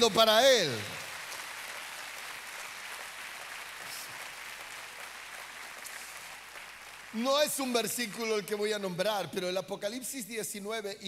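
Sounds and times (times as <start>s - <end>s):
speech: 0.0s - 1.0s, 7.1s - 11.0s
audience applause: 0.0s - 8.6s.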